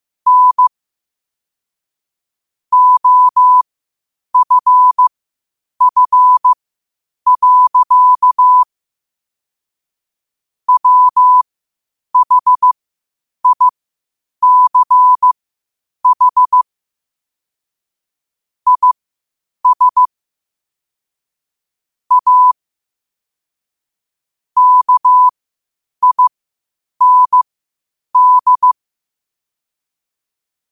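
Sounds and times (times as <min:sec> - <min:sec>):
morse code at 5 wpm: 0:00.3 - 0:00.7, 0:02.7 - 0:03.6, 0:04.4 - 0:05.0, 0:05.8 - 0:06.6, 0:07.3 - 0:08.7, 0:10.7 - 0:11.4, 0:12.2 - 0:12.8, 0:13.4 - 0:13.7, 0:14.4 - 0:15.3, 0:16.0 - 0:16.6, 0:18.7 - 0:19.0, 0:19.6 - 0:20.1, 0:22.1 - 0:22.6, 0:24.6 - 0:25.3, 0:26.0 - 0:26.3, 0:27.0 - 0:27.5, 0:28.2 - 0:28.8.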